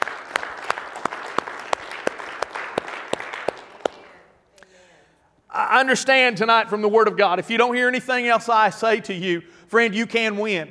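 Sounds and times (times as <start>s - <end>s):
audience applause and hand clapping: 0.0s - 4.3s
speech: 5.7s - 10.6s.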